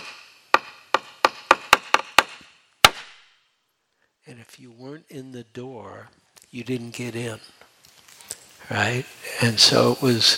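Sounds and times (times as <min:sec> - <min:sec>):
wooden board struck with a mallet: 0:00.0 - 0:03.2
speech: 0:04.3 - 0:07.6, 0:08.6 - 0:10.3.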